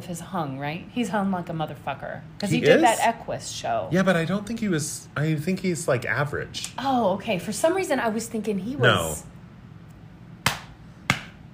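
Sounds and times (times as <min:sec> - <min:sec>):
speech: 0:00.1 - 0:09.4
hand slapping the inner thigh: 0:10.4 - 0:11.4.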